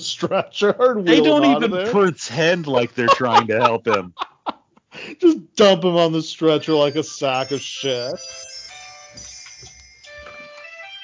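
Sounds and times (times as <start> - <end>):
laughter: 0.0 - 4.7
speech: 0.1 - 4.3, 5.0 - 8.5
electronic alarm ringing: 6.7 - 11.0.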